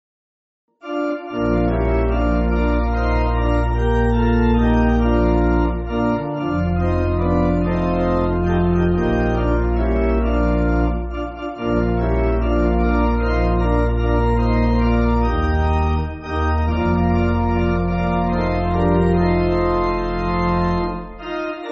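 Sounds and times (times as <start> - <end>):
pipe organ church music: 0.8 - 21.7.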